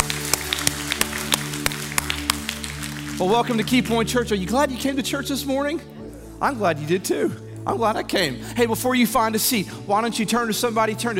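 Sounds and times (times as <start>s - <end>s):
church congregation clapping in praise: 0.0s - 4.3s
speech: 3.2s - 11.1s.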